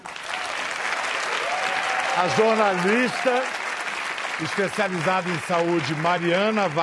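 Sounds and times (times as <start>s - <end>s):
audience applause: 0.0s - 6.8s
speech: 2.2s - 3.6s, 4.4s - 6.8s.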